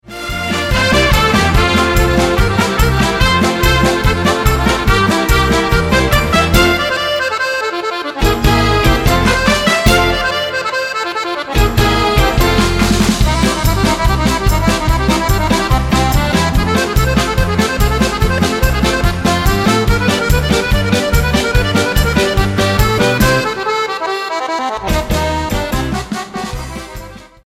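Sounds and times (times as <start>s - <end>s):
accordion music: 0.0s - 27.4s.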